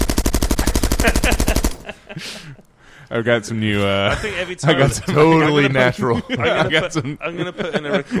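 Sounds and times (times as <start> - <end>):
machine gun fire: 0.0 - 1.9
laughter: 1.0 - 2.7, 3.8 - 8.1
speech: 2.1 - 8.1.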